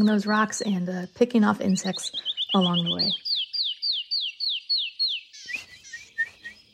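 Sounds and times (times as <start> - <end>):
speech: 0.0 - 3.3
canyon wren raspy buzzy calls and sharp chips: 0.0 - 6.7
canyon wren singing descending whistled notes: 2.3 - 6.7.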